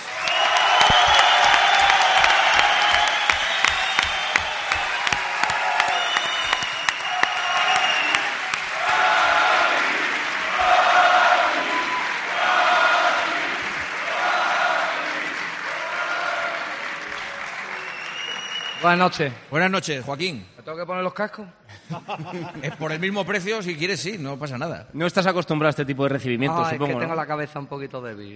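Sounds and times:
studio audience applause: 0:00.0 - 0:19.4
speech: 0:18.9 - 0:28.3
laughter: 0:21.7 - 0:23.3.

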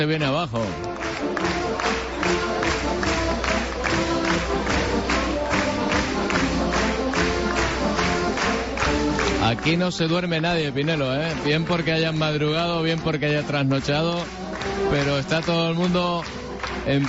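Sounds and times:
speech: 0:00.0 - 0:02.4, 0:09.5 - 0:17.0
audience clapping in unison along to band music: 0:00.0 - 0:17.0
loud band music: 0:00.0 - 0:17.0.

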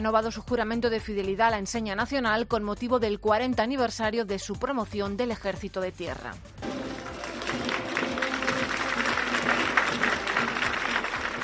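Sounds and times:
speech: 0:00.0 - 0:06.6
crowd applause after military flag oath ceremony: 0:06.6 - 0:11.4.

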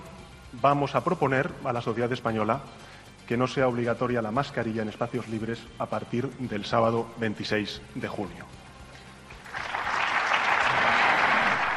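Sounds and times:
speech: 0:00.6 - 0:08.6
business audience applauding: 0:09.4 - 0:11.7.

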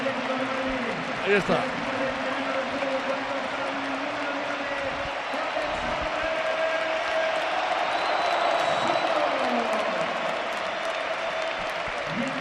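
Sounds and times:
stadium crowd ovation for substituted striker: 0:00.0 - 0:12.4
speech: 0:01.3 - 0:01.8.

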